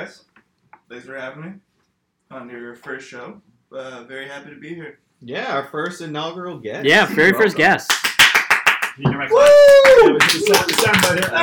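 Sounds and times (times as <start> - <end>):
speech: 0.0 - 0.3, 0.9 - 1.7, 2.3 - 8.1, 9.0 - 11.4
crowd clapping and cheering: 7.0 - 11.4.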